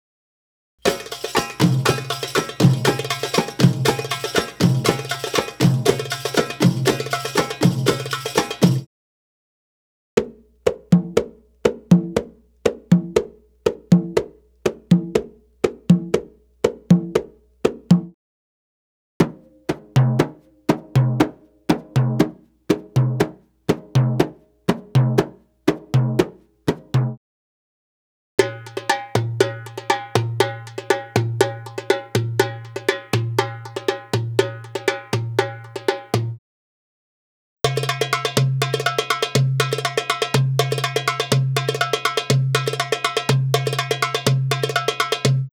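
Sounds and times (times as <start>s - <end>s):
Arabic rhythm percussion: 0.8s - 8.9s, 10.2s - 18.2s, 19.2s - 27.2s, 28.4s - 36.4s, 37.6s - 45.5s.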